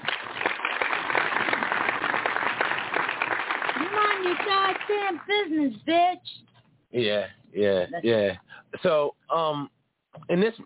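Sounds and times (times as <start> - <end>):
audience applause: 0.0 - 5.3
speech: 4.3 - 6.3, 6.9 - 10.6.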